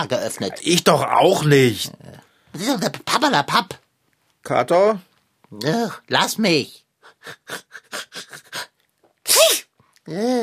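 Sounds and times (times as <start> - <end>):
speech: 0.0 - 3.8, 4.4 - 8.2, 9.4 - 10.4
sneeze: 9.2 - 9.8.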